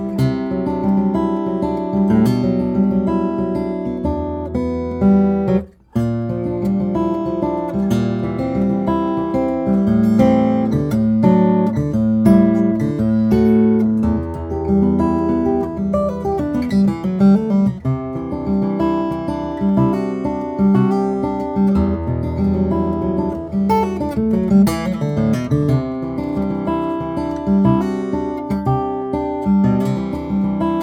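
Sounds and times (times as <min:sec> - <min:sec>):
jumbo flattop steel-string guitar of wenge and western red cedar: 0:00.0 - 0:30.8.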